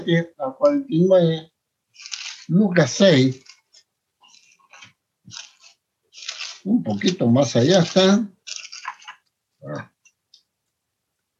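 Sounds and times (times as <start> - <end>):
speech: 0.0 - 3.5, 6.6 - 8.4, 9.6 - 9.9
pages of an old Bible rustling as they are turned: 2.0 - 2.5, 3.3 - 9.2
stuck leaves of an old Bible peeling apart: 4.7 - 9.2.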